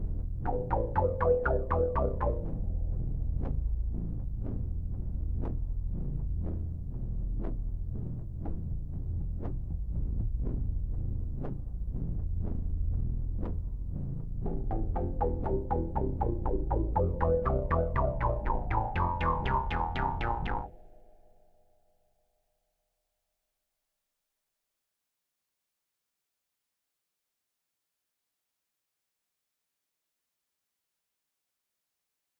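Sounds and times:
bass: 0:00.0 - 0:21.2.

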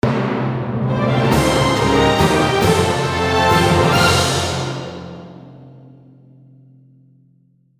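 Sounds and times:
victory jingle: 0:00.9 - 0:05.4.

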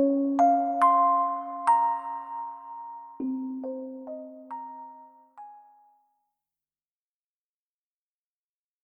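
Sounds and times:
music box: 0:00.0 - 0:06.0.

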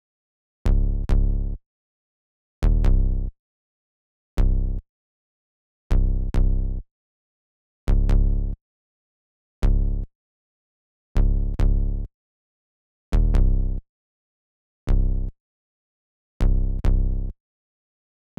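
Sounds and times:
bass: 0:00.7 - 0:01.6, 0:02.6 - 0:03.3, 0:04.4 - 0:04.8, 0:05.9 - 0:06.8, 0:07.9 - 0:08.6, 0:09.6 - 0:10.1, 0:11.2 - 0:12.1, 0:13.1 - 0:13.8, 0:14.9 - 0:15.4, 0:16.4 - 0:17.4.

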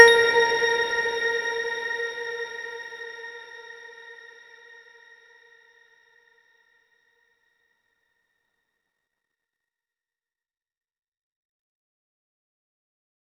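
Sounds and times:
tone: 0:00.0 - 0:02.5.

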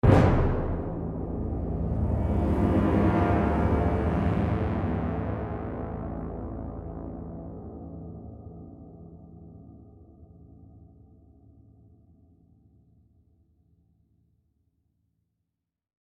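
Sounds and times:
tension music stinger: 0:00.0 - 0:08.1.

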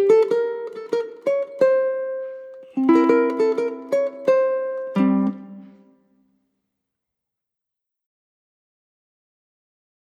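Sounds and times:
ukulele desert background music: 0:00.0 - 0:05.9.

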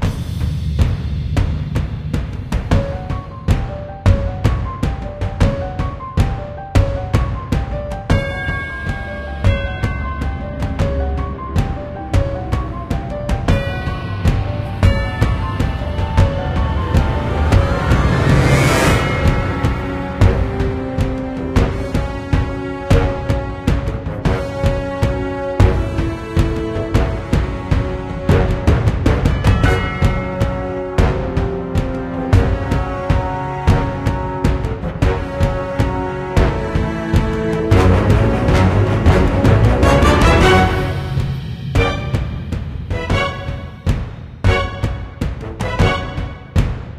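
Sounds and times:
game combat music: 0:00.1 - 0:46.9.

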